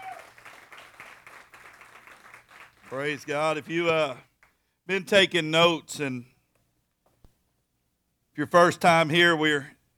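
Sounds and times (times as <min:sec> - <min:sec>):
audience applause: 0:00.0 - 0:03.2
speech: 0:02.9 - 0:04.3, 0:04.9 - 0:06.3, 0:08.4 - 0:09.8.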